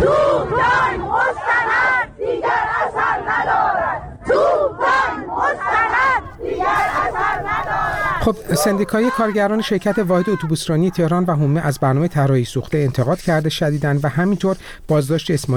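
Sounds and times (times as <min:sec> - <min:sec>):
crowd of protesters chanting slogans: 0:00.0 - 0:11.4
speech: 0:08.2 - 0:15.5.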